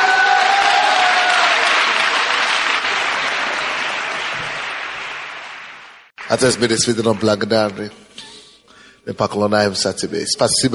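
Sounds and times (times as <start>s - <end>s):
audience applause: 0.0s - 7.5s
speech: 6.3s - 8.0s, 9.0s - 10.7s.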